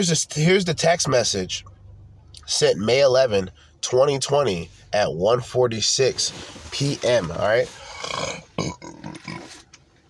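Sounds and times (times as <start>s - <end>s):
speech: 0.0s - 1.8s, 2.5s - 9.6s
burp: 7.9s - 9.6s.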